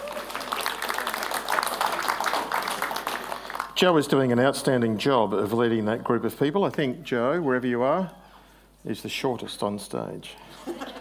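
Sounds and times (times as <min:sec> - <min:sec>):
audience applause for the band: 0:00.0 - 0:03.8
speech: 0:03.8 - 0:08.2, 0:08.8 - 0:10.9.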